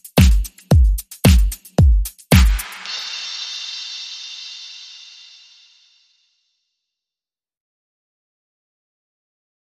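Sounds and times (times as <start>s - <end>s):
low mellow beat: 0.0s - 4.6s.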